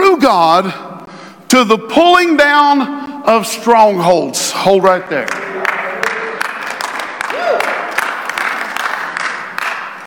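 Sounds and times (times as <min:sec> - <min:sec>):
speech: 0:00.2 - 0:00.9, 0:01.5 - 0:05.7
audience clapping: 0:05.1 - 0:10.0.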